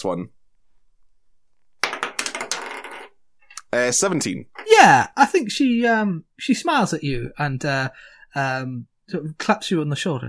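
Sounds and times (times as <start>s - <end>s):
speech: 0.0s - 0.4s, 3.8s - 10.2s
dice being rolled: 1.8s - 3.2s.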